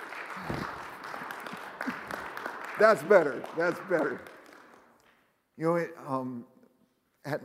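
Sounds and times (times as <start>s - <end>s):
audience clapping hands: 0.0s - 5.8s
speech: 2.8s - 4.3s, 5.6s - 6.5s, 7.2s - 7.4s.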